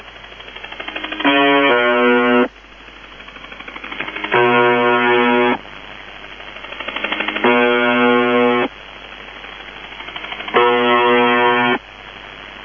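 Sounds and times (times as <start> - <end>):
wavering buzzer: 0.8 - 2.5, 3.7 - 5.6, 6.6 - 8.7, 9.9 - 11.8.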